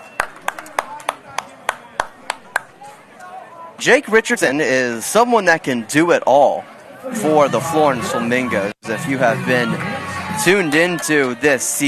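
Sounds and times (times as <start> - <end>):
hand clapping, a round of applause: 0.0 - 2.7, 9.7 - 11.6
speech: 3.8 - 11.8.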